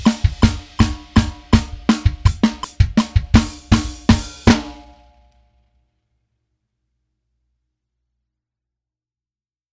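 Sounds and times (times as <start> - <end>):
fast drums: 0.0 - 5.1.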